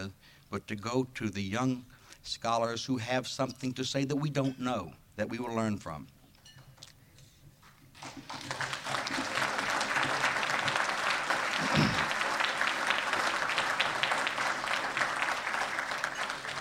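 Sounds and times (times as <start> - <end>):
speech: 0.0 - 6.2
audience applause: 8.0 - 16.6.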